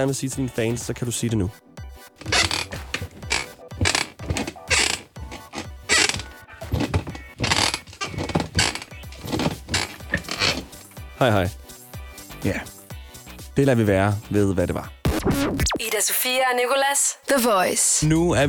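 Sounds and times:
speech: 0:00.0 - 0:01.6, 0:11.2 - 0:11.6, 0:12.4 - 0:12.7, 0:13.6 - 0:18.4
wooden chair creaking: 0:02.2 - 0:11.0.

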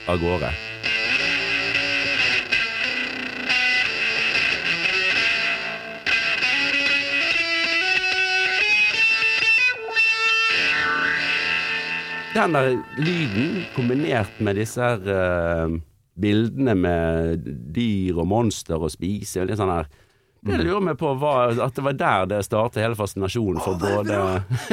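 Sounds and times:
fuzz guitar solo with cracked nasal tone: 0:00.0 - 0:14.5
speech: 0:00.1 - 0:00.8, 0:12.4 - 0:24.7.

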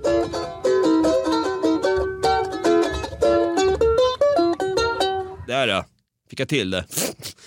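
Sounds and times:
charango, small South American guitar, being played: 0:00.0 - 0:05.5
speech: 0:05.6 - 0:07.0.

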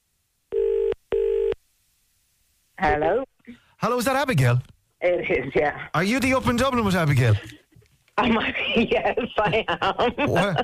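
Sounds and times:
ringing tone of an outgoing phone call: 0:00.5 - 0:01.6
speech: 0:02.8 - 0:07.6, 0:08.2 - 0:10.6.

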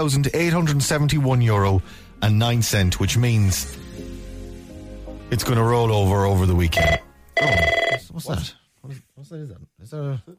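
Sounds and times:
speech: 0:00.0 - 0:03.8, 0:05.3 - 0:10.3
special hotline telephone ringing: 0:06.7 - 0:08.0.

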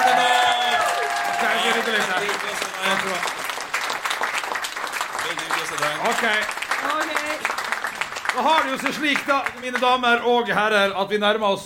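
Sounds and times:
voices cheering: 0:00.0 - 0:03.2
audience applause: 0:00.0 - 0:10.2
speech: 0:05.8 - 0:07.6, 0:08.4 - 0:11.6.

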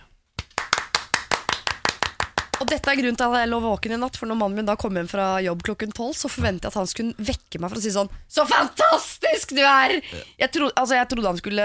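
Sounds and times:
two people clapping hands: 0:00.4 - 0:03.0
speech: 0:02.6 - 0:11.6.

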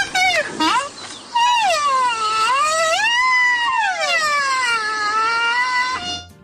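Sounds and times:
baby rhino squealing: 0:00.0 - 0:06.3.

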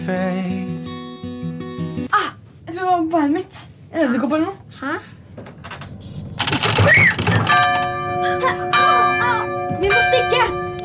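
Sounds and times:
speech: 0:00.0 - 0:00.7, 0:02.2 - 0:05.6, 0:06.8 - 0:10.6
church bell ringing: 0:07.5 - 0:10.8.

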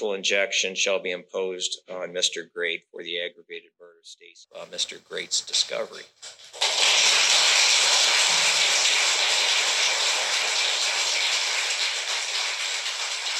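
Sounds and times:
speech: 0:00.0 - 0:07.3
cheering in a courtroom: 0:06.8 - 0:13.3.

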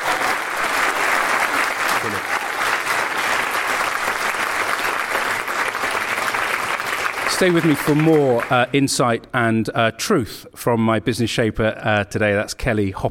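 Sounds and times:
audience applause: 0:00.0 - 0:08.8
speech: 0:07.4 - 0:13.0.

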